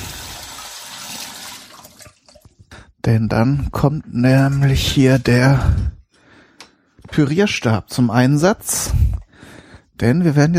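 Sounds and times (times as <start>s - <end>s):
washing hands under running tap water: 0.0s - 2.6s
speech: 3.0s - 5.9s, 7.2s - 9.1s, 10.0s - 10.5s.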